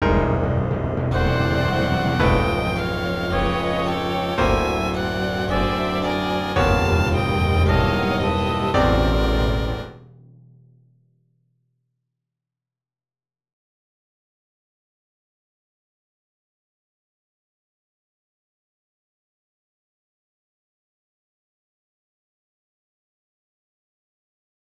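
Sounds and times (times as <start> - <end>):
piano concert: 0.0 - 10.0.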